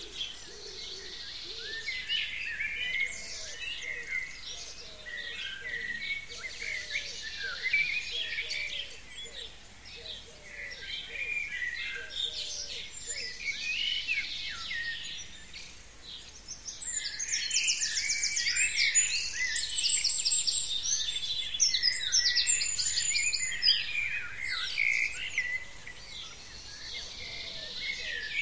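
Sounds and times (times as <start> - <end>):
busy bird chorus of high chirps and twitters: 0.0 - 28.4.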